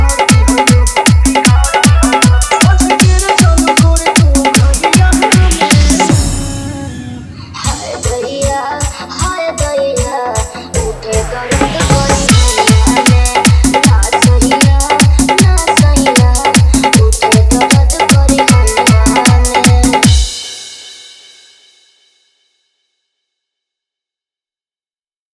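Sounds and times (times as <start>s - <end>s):
Bhojpuri dholak bass dance mix: 0.0s - 7.0s, 7.6s - 20.7s.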